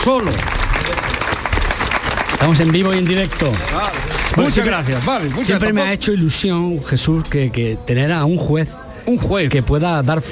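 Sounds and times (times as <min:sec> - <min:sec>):
speech: 0:00.0 - 0:01.4, 0:02.4 - 0:10.3
studio audience applause: 0:00.0 - 0:05.9.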